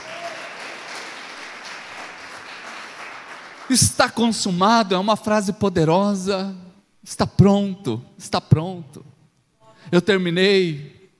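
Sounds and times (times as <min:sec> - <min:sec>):
audience applauding: 0:00.0 - 0:03.9
speech: 0:03.7 - 0:09.2, 0:09.8 - 0:11.0.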